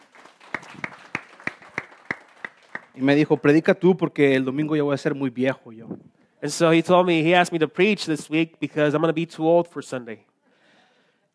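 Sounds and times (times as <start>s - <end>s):
church congregation clapping for a pastor's birthday: 0.0s - 3.6s
speech: 3.0s - 10.3s.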